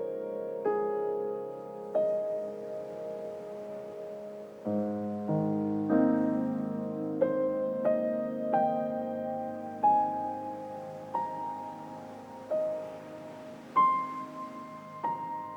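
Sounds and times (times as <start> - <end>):
serene piano: 0.0 - 15.5
ocean waves: 1.5 - 7.2, 9.3 - 15.5.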